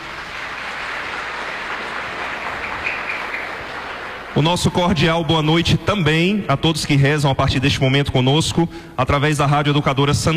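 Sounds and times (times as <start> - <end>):
audience applause: 0.0 - 5.4
speech: 4.4 - 10.3.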